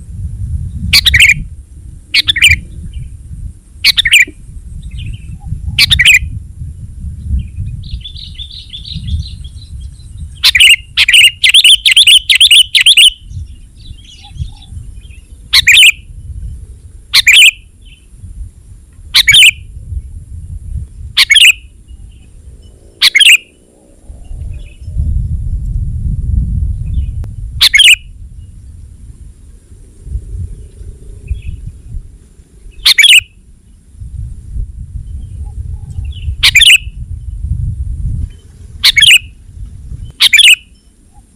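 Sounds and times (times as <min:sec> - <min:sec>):
low rumbling noise: 0:00.0 - 0:41.3
Sooty-headed bulbul calling: 0:00.7 - 0:01.5, 0:02.1 - 0:03.1, 0:03.8 - 0:06.3, 0:07.3 - 0:18.1, 0:19.1 - 0:19.7, 0:21.0 - 0:25.1, 0:26.8 - 0:28.8, 0:32.6 - 0:33.8, 0:35.0 - 0:37.4, 0:38.3 - 0:39.4, 0:40.0 - 0:41.3.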